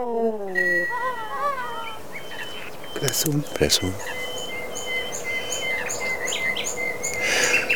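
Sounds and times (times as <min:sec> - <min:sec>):
speech: 0:00.0 - 0:00.4, 0:03.0 - 0:04.2
bird chirping and singing: 0:00.5 - 0:07.7.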